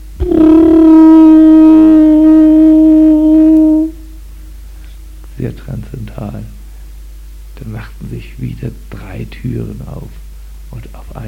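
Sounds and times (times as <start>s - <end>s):
conch shell horn blowing: 0.0s - 4.1s
speech: 0.3s - 1.0s, 7.8s - 11.2s.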